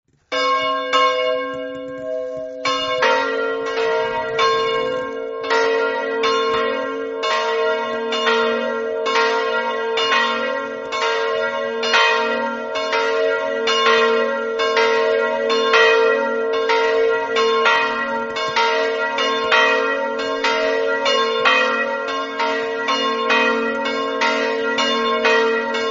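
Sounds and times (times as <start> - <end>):
bells ringing: 0.3 - 25.8.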